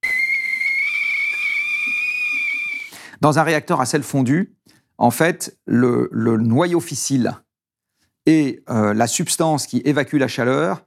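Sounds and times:
whistling kettle: 0.0s - 3.0s
speech: 3.2s - 7.5s, 8.2s - 10.8s.

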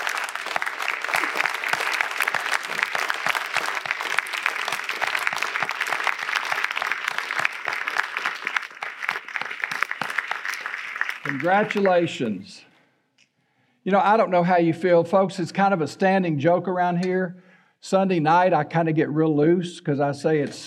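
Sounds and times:
audience standing ovation at a homeschool graduation church service: 0.0s - 12.4s
speech: 11.4s - 12.7s, 13.8s - 20.6s.

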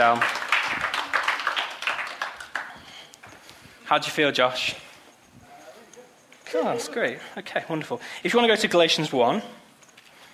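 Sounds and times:
speech: 0.0s - 0.4s, 3.9s - 4.8s, 6.5s - 9.6s
audience applause: 0.0s - 2.9s.

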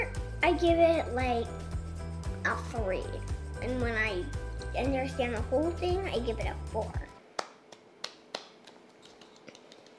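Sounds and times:
speech: 0.4s - 1.6s, 2.4s - 7.0s
soft polite golf clap: 7.4s - 9.9s.

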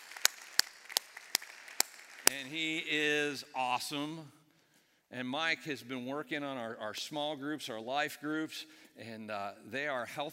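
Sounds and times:
audience applause: 0.0s - 2.5s
speech: 2.3s - 4.4s, 5.1s - 10.3s.

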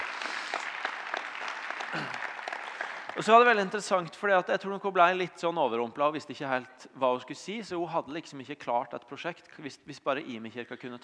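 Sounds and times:
audience applause: 0.0s - 3.9s
speech: 1.9s - 2.2s, 3.2s - 11.0s.

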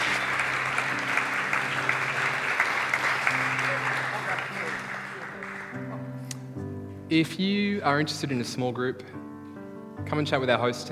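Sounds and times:
audience applause: 0.0s - 6.1s
speech: 7.1s - 9.2s, 10.1s - 10.8s.

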